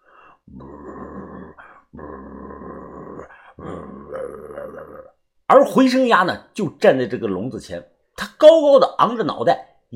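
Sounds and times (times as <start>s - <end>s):
black cat growling: 0.5s - 5.1s
speech: 5.5s - 9.9s.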